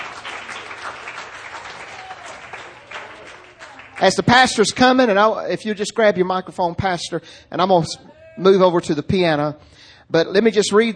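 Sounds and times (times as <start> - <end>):
audience applause: 0.0 - 4.8
speech: 4.0 - 10.9.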